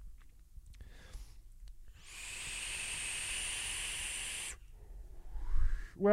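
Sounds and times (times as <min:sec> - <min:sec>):
vape atomizer whistling from airflow: 0:01.9 - 0:04.6.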